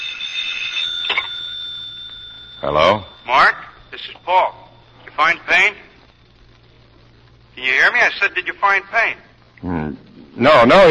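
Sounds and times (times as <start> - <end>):
telephone ringing: 0.0 - 6.8
speech: 2.6 - 4.6, 5.2 - 5.8, 7.6 - 10.8.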